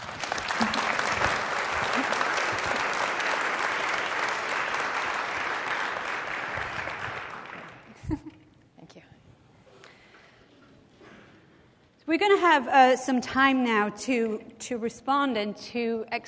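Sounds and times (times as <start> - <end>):
audience applause: 0.0 - 8.0
speech: 12.2 - 16.2.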